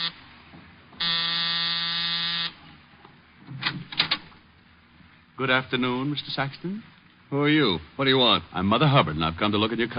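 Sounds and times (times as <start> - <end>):
apartment door buzzer being pressed: 1.0 - 2.6
speech: 5.4 - 9.9.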